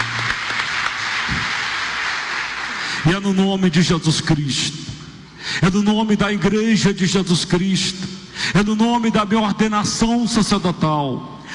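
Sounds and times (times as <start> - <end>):
congregation applause during a church worship service: 0.0 - 3.7
speech: 3.0 - 4.9, 5.5 - 11.5.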